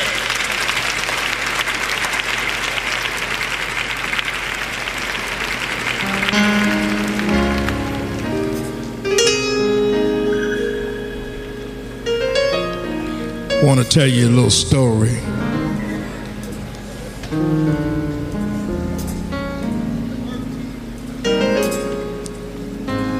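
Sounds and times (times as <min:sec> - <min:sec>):
audience clapping hands in praise: 0:00.0 - 0:09.0
organ-like chords: 0:05.3 - 0:23.1
speech: 0:13.7 - 0:15.3.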